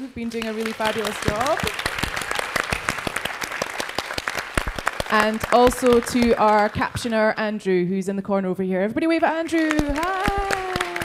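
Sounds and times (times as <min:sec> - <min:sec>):
speech: 0:00.0 - 0:02.2, 0:05.1 - 0:10.5
audience applause: 0:00.2 - 0:07.2, 0:09.5 - 0:11.0.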